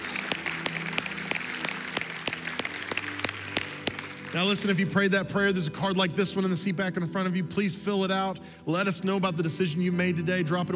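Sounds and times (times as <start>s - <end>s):
audience round of applause: 0.0s - 4.4s
speech: 4.3s - 10.7s.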